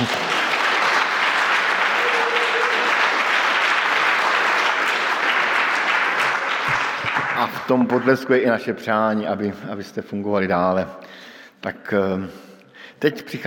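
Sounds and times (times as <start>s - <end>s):
audience applauding: 0.0s - 8.3s
speech: 7.7s - 11.0s, 11.6s - 13.4s.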